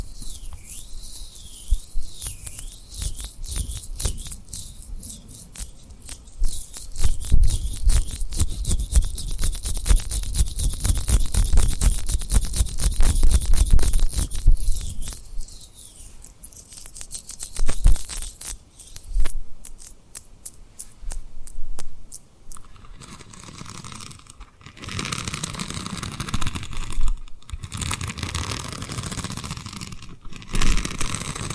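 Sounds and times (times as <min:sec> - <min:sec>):
tapping and rubbing on rhinestones: 0:00.0 - 0:31.5.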